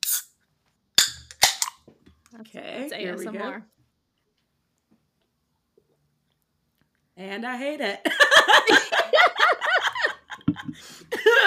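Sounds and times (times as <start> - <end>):
wine bottle being opened: 0.0 - 0.4, 1.0 - 1.8
speech: 2.4 - 3.8, 7.2 - 8.8
laughter: 8.1 - 11.4.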